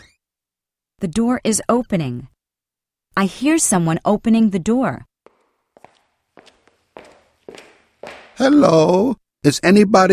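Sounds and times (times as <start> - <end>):
speech: 1.0 - 2.3, 3.2 - 5.1, 8.4 - 10.1
footsteps of someone walking: 5.3 - 8.7.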